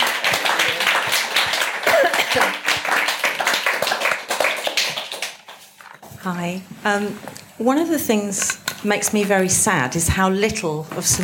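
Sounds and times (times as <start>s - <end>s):
audience round of applause: 0.0s - 5.8s
speech: 2.3s - 2.7s, 6.2s - 11.2s.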